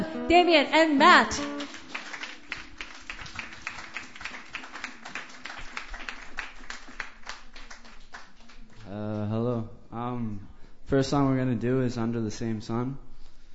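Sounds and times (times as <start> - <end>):
speech: 0.3 - 1.5, 10.9 - 13.1
audience clapping at a Sunday night open mic: 1.2 - 9.0.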